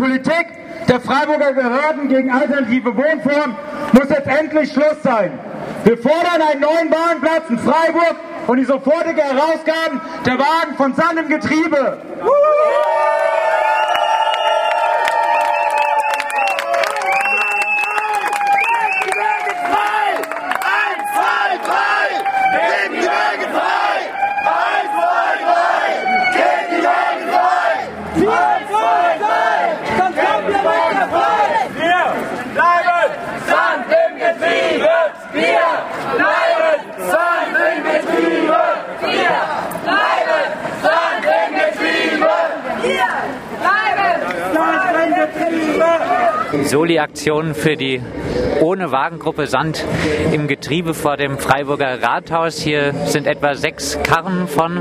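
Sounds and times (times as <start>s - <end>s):
speech: 0.0s - 12.8s, 46.5s - 54.7s
protest crowd cheering and shouting: 12.1s - 47.0s.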